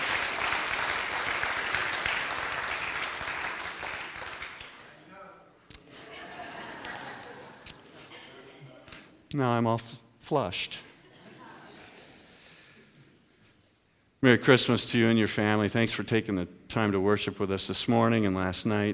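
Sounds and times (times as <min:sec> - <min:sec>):
audience applauding: 0:00.0 - 0:05.0
laughter: 0:05.8 - 0:09.0, 0:10.9 - 0:12.4
speech: 0:09.3 - 0:10.8, 0:14.2 - 0:18.9.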